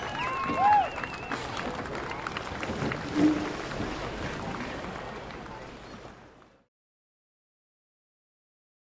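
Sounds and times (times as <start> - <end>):
hydroplane dock ambience: 0.0 - 6.7.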